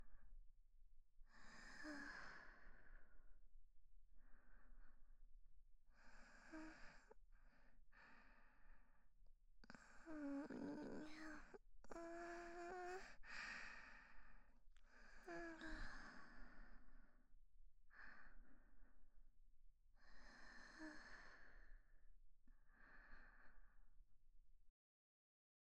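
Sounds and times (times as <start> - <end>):
woman breathing calmly in sleep beside her boyfriend: 1.3 - 3.4, 5.9 - 9.1, 9.7 - 17.3, 20.0 - 21.9, 22.6 - 23.9.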